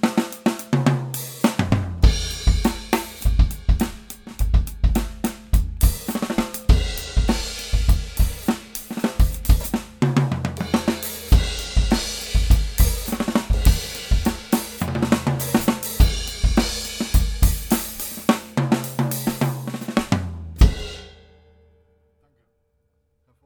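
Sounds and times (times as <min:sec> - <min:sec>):
raw overhead cymbals signal: 0:00.0 - 0:21.4
raw bass drum signal: 0:00.8 - 0:21.0.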